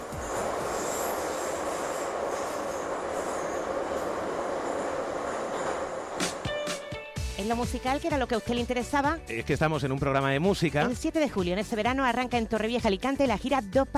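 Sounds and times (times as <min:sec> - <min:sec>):
metro train running: 0:00.0 - 0:08.6
speech: 0:07.5 - 0:13.9.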